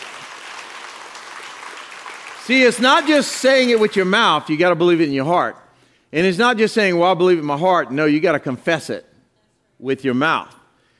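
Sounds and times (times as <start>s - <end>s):
audience hand clapping: 0.0s - 4.5s
speech: 2.5s - 9.1s, 9.8s - 10.6s.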